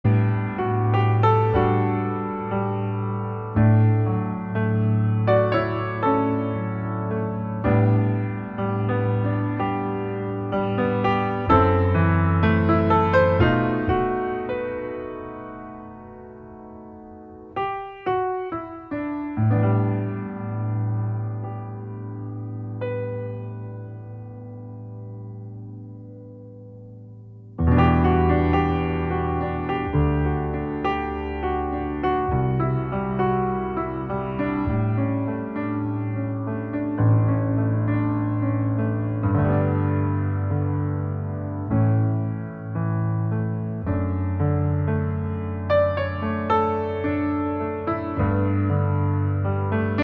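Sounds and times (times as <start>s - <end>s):
solo piano: 0.0s - 50.0s.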